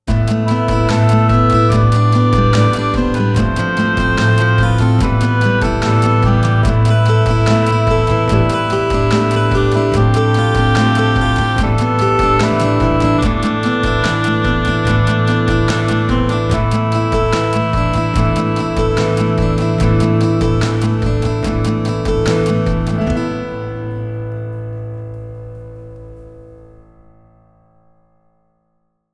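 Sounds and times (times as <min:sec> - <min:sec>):
soft theme with melody: 0:00.1 - 0:26.9.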